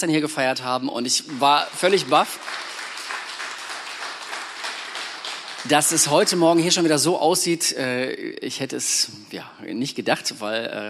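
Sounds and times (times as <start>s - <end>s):
speech: 0.0s - 2.8s, 5.6s - 10.8s
audience applauding: 1.1s - 7.1s.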